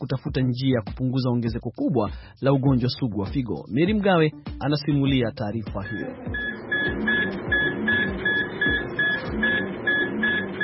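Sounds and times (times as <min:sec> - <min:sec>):
speech: 0:00.1 - 0:07.2
dialysis machine pumping at a hemodialysis centre in Yaounde, Cameroon: 0:05.8 - 0:10.6.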